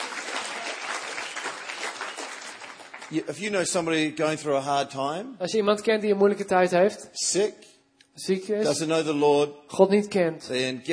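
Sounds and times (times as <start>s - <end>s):
audience clapping: 0.0s - 3.8s
speech: 3.1s - 10.9s.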